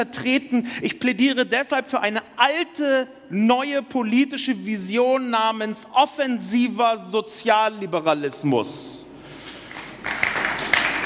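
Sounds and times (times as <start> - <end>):
speech: 0.0 - 9.0
restrained audience applause: 9.7 - 11.0.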